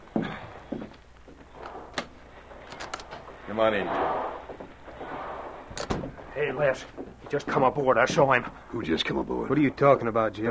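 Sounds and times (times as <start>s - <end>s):
cabin door opening with latch clunk and creaky rattle: 1.6s - 6.4s
speech: 3.5s - 4.3s, 6.4s - 10.4s.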